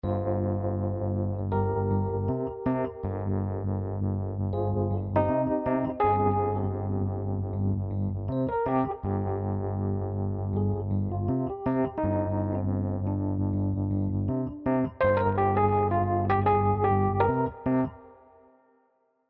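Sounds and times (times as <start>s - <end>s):
ballad: 0.0s - 18.4s.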